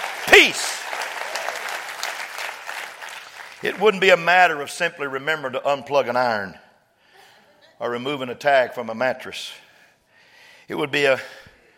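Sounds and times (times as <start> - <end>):
audience clapping hands: 0.0 - 4.3
speech: 0.4 - 1.0, 3.6 - 6.6, 7.8 - 9.6, 10.7 - 11.4.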